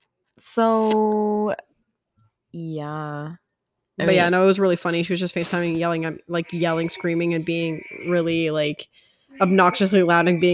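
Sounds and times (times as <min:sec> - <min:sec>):
speech: 0:00.4 - 0:01.7, 0:02.5 - 0:03.4, 0:04.0 - 0:10.5
electronic tone from a toy sword being switched on: 0:05.7 - 0:10.5.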